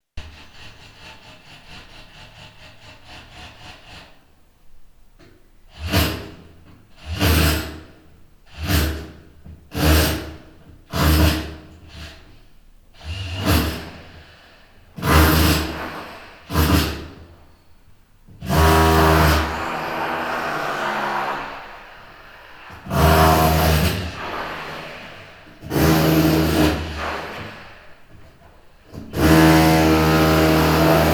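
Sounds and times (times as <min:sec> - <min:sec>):
chiselling a wall: 0:00.1 - 0:17.7, 0:18.3 - 0:31.1.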